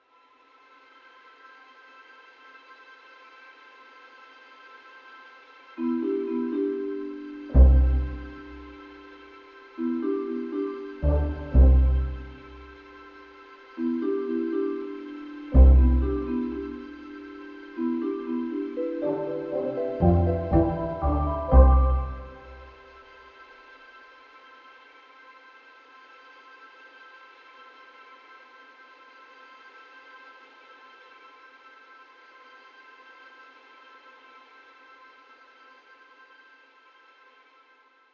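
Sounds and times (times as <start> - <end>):
minimal music loop at 120 bpm: 5.8 - 23.0.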